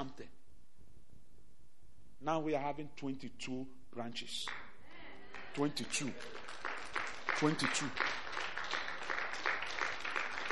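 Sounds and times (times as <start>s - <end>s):
speech: 2.2s - 4.7s, 5.6s - 6.6s, 7.4s - 8.2s
audience clapping: 4.4s - 10.5s.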